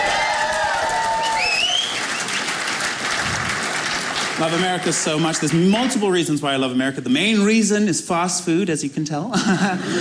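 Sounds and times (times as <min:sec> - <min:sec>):
audience applause: 0:00.0 - 0:06.1
speech: 0:04.4 - 0:09.9
laughter: 0:09.3 - 0:09.9.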